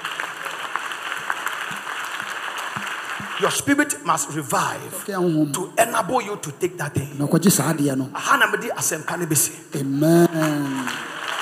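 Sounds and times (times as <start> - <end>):
audience clapping: 0.0 - 5.0, 9.8 - 11.3
speech: 3.4 - 11.0.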